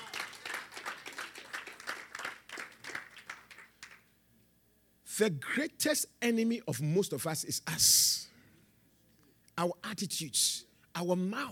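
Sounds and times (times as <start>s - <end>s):
audience applause: 0.0s - 4.0s
speech: 5.2s - 8.2s, 9.6s - 11.5s.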